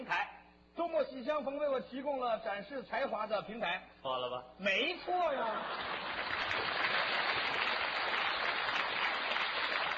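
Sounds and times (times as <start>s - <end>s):
speech: 0.9s - 7.1s
audience clapping: 5.6s - 9.9s.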